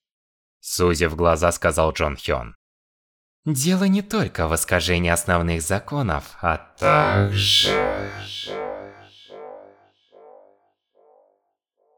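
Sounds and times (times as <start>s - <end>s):
speech: 0.6s - 2.6s, 3.4s - 8.7s
stretched spoken word echoing as an audiobook audio effect: 3.5s - 9.4s.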